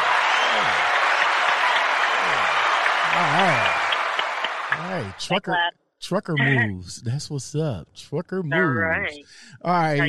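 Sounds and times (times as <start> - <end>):
crowd applause: 0.0 - 5.3
laughter: 1.8 - 5.4
speech: 5.0 - 10.0.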